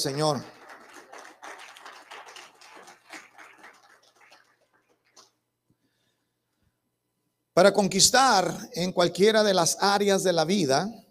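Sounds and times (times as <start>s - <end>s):
speech: 0.0s - 0.6s, 7.6s - 11.0s
audience applauding: 0.0s - 5.4s.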